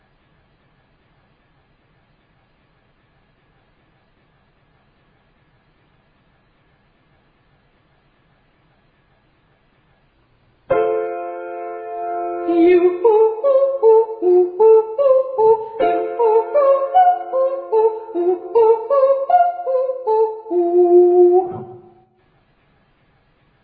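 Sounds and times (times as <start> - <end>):
ascending triads and octaves: 10.7 - 22.0.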